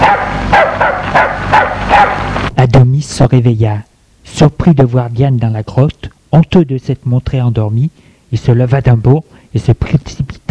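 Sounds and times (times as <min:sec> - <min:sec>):
dog barking at a field mouse: 0:00.0 - 0:02.4
speech: 0:03.2 - 0:10.4.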